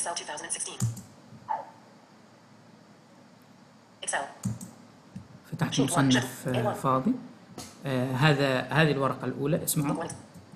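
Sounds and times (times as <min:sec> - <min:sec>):
speech: 0:00.0 - 0:01.0, 0:04.0 - 0:04.6, 0:05.5 - 0:10.2
computer keyboard and mouse clicks while opening Excel: 0:00.8 - 0:01.1, 0:04.4 - 0:05.4.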